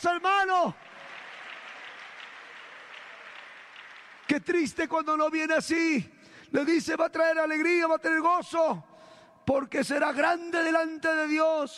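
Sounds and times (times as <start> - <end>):
speech: 0.0 - 0.9, 4.3 - 8.9, 9.5 - 11.7
audience applause: 0.0 - 4.7.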